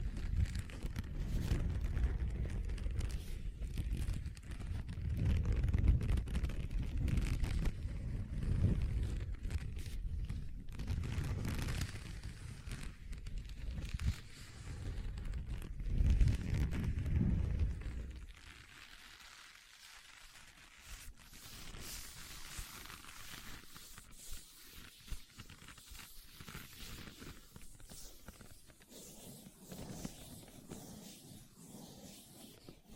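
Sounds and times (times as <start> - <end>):
scratching on leather: 0.1 - 32.9.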